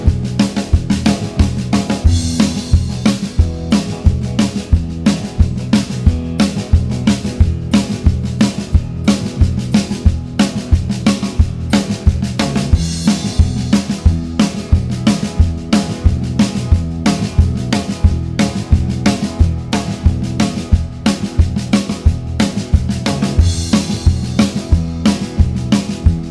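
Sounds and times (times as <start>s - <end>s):
guitar vamp in E: 0.0s - 26.2s.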